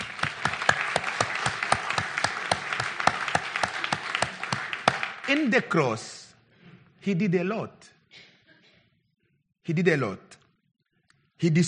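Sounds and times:
audience clapping: 0.0s - 6.2s
speech: 5.3s - 6.2s, 7.0s - 7.9s, 9.6s - 10.3s, 11.4s - 11.6s.

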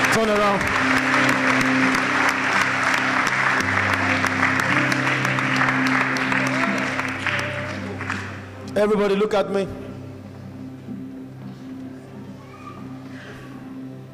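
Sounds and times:
audience applause: 0.0s - 8.6s
speech: 0.2s - 2.0s, 8.8s - 9.8s.

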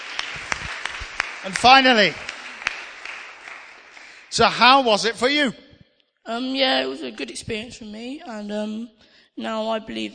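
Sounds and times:
audience clapping hands: 0.0s - 4.7s
speech: 1.4s - 2.2s, 4.4s - 5.6s, 6.3s - 10.1s.

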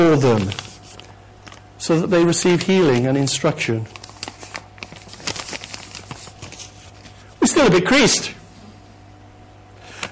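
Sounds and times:
speech: 0.0s - 0.6s, 1.8s - 4.0s, 7.6s - 8.4s
crumpling a sheet of paper: 0.0s - 7.4s.

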